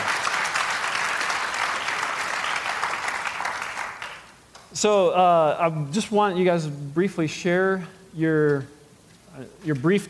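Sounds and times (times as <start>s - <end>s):
audience clapping: 0.0s - 4.7s
speech: 4.8s - 8.8s, 9.4s - 10.0s.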